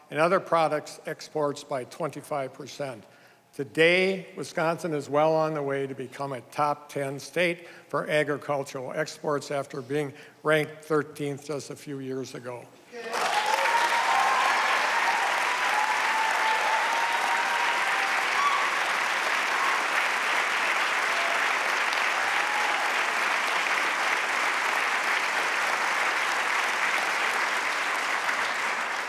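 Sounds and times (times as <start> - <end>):
speech: 0.1 - 13.2
faint cheers: 13.0 - 23.3
large audience applause: 13.0 - 29.0.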